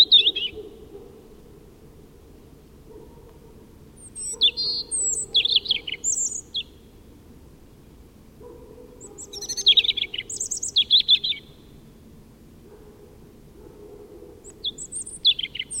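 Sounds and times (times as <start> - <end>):
European robin singing: 0.0 - 0.8, 4.0 - 6.9, 9.0 - 11.8, 14.4 - 15.7.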